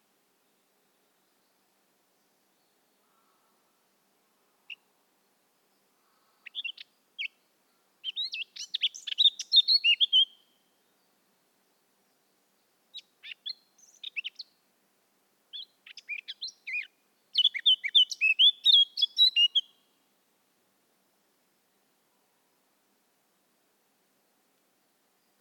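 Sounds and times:
background hiss: 0.0s - 25.3s
Eurasian blackcap song: 6.4s - 14.6s, 15.5s - 20.0s.

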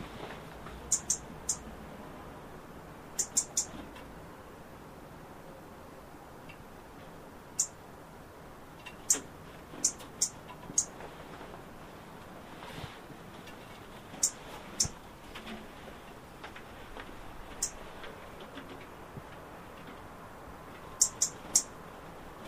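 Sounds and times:
background hiss: 0.0s - 22.4s
European robin ticking: 0.9s - 1.6s, 3.1s - 3.7s, 7.5s - 7.8s, 21.0s - 21.7s.

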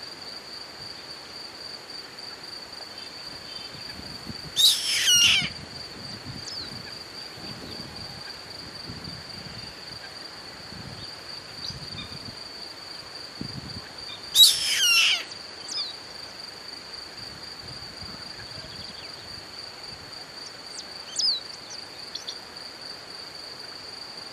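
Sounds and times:
bird buzzy call: 4.6s - 5.6s, 14.4s - 15.3s.

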